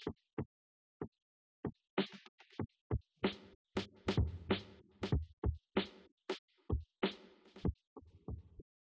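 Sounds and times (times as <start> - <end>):
instrumental with drums: 2.0 - 8.6.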